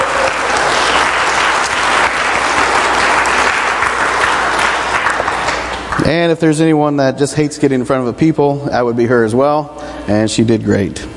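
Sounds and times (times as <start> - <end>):
audience applause: 0.0 - 6.1
speech: 6.1 - 11.1.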